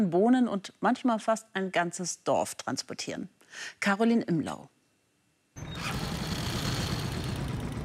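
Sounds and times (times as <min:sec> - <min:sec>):
speech: 0:00.0 - 0:04.8
converted heavy-load Monsterbike motorcycle engine rumbling: 0:05.6 - 0:07.8.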